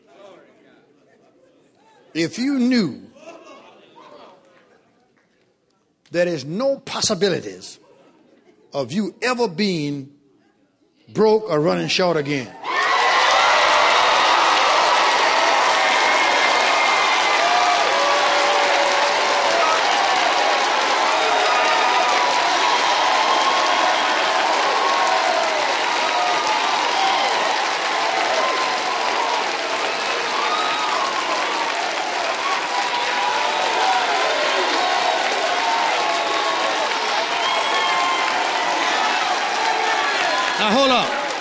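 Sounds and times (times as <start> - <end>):
speech: 2.2 - 3.1, 6.1 - 7.8, 8.7 - 10.2, 11.1 - 12.7
audience applause: 12.7 - 41.3.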